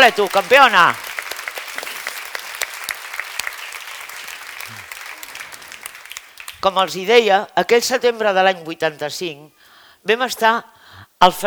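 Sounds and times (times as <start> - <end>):
speech: 0.0 - 1.0, 6.6 - 11.4
audience applause: 0.0 - 6.8.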